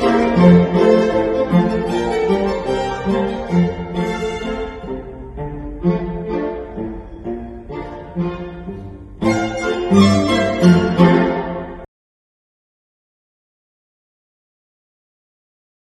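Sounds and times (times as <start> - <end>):
string quartet playing a Hungarian dance: 0.0 - 11.9.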